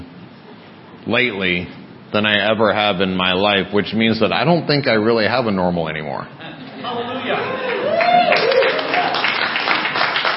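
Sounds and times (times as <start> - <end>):
speech: 1.0 - 7.5
audience clapping: 7.4 - 10.3.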